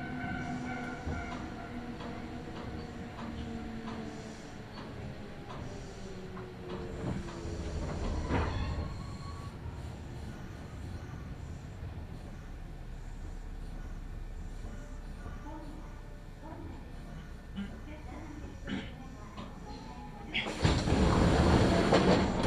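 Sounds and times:
Kintetsu Nagoya Line local train motor whine: 0.0 - 16.1
Kintetsu Nagoya Line local train rumble: 0.0 - 22.4.

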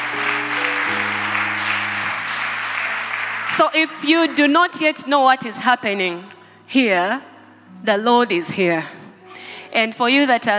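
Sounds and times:
audience clapping hands: 0.0 - 4.0
speech: 3.6 - 9.0, 9.7 - 10.5.

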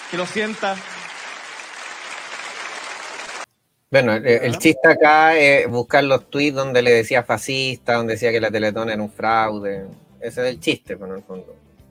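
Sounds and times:
audience applause: 0.0 - 3.5
speech: 0.1 - 0.9, 3.9 - 11.6.

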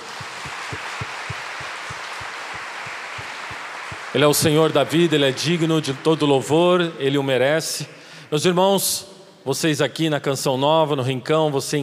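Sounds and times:
low rhythmic thump: 0.0 - 4.2
crowd applauding: 0.0 - 7.1
speech: 4.2 - 11.8.

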